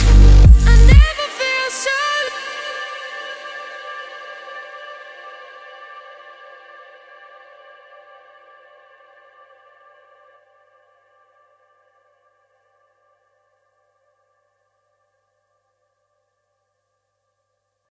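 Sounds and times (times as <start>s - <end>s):
bass boosted remix music: 0.0s - 1.3s.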